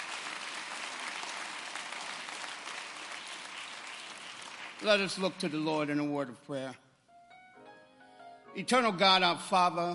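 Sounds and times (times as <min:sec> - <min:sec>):
audience applauding: 0:00.0 - 0:05.8
speech: 0:04.8 - 0:06.8, 0:08.6 - 0:09.9.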